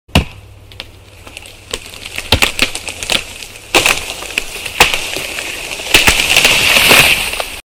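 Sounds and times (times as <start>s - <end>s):
tree being felled: 0.1s - 7.6s.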